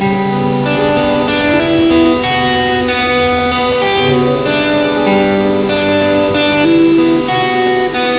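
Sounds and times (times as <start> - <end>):
music: 0.0 - 8.1.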